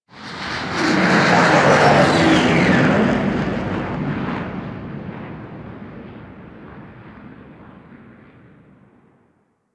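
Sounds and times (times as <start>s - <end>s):
ship fly by: 0.2s - 5.1s.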